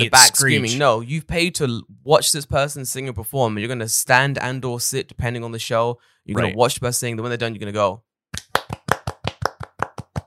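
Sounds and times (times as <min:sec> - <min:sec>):
speech: 0:00.0 - 0:08.1
hands clapping: 0:08.4 - 0:10.2.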